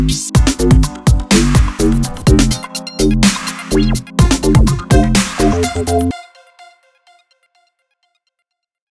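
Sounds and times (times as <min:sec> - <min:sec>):
halftime dub mix: 0:00.0 - 0:06.1.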